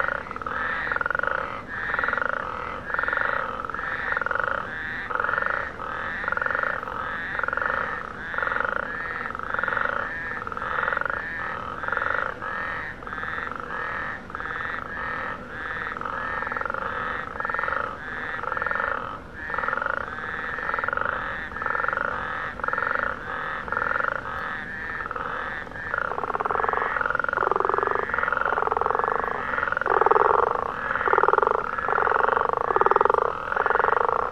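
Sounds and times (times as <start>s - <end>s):
frogs giving rapid rattling croaks: 0.0s - 34.3s.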